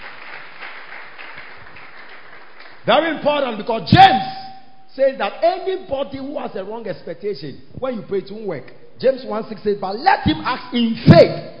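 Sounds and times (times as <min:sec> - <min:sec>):
audience clapping hands: 0:00.0 - 0:02.9
speech: 0:02.8 - 0:04.4, 0:05.0 - 0:11.5.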